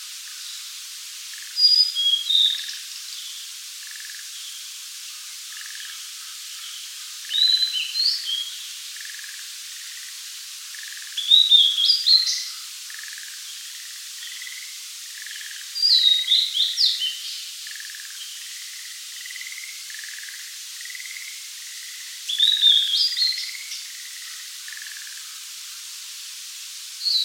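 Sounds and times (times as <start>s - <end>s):
Blue-and-white flycatcher singing whistled phrases: 1.3s - 4.6s, 6.6s - 9.3s, 10.7s - 13.6s, 14.2s - 25.2s, 27.0s - 27.2s.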